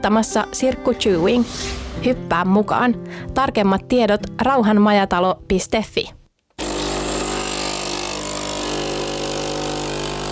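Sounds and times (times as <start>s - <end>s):
speech: 0.0s - 6.2s
espresso machine brewing: 6.6s - 10.3s.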